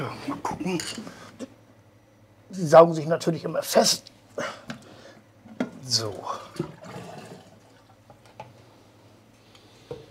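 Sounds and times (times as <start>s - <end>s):
speech: 0.0s - 1.2s, 2.5s - 4.6s, 5.9s - 6.8s
water jet from a sewer flushing truck: 5.6s - 8.1s.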